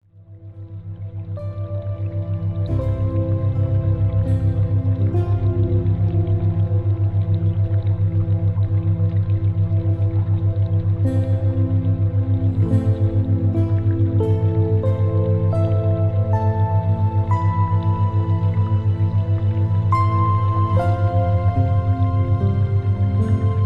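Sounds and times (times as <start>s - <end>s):
music: 0.0s - 23.6s.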